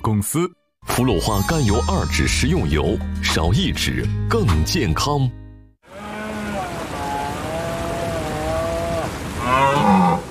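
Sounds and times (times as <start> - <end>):
speech: 0.1 - 5.4
red deer stag bellowing in rut: 5.9 - 10.2.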